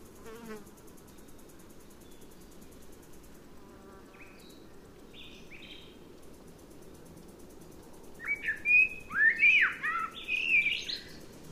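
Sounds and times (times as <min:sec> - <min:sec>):
Eurasian blackbird song: 0:04.2 - 0:06.0, 0:08.2 - 0:11.2.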